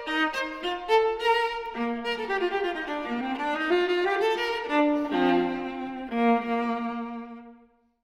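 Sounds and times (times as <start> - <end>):
viola playing a courante in E-flat major: 0.0 - 7.8.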